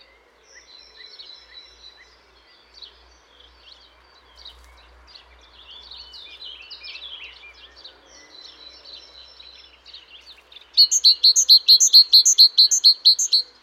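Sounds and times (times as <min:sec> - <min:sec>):
faint chirping from other birds: 0:00.0 - 0:13.6
great tit calls: 0:10.8 - 0:13.5.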